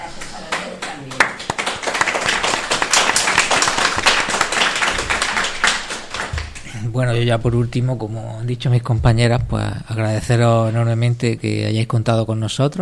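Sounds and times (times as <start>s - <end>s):
applause: 0.2s - 6.7s
speech: 7.0s - 12.7s.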